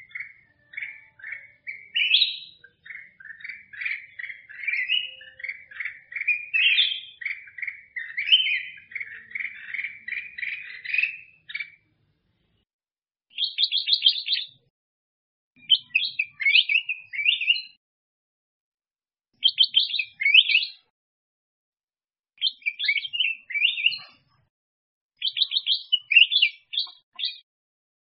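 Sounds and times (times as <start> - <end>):
black-crested bulbul singing: 0.0 - 11.9, 13.3 - 14.7, 15.6 - 17.8, 19.4 - 20.9, 22.4 - 24.1, 25.2 - 27.4.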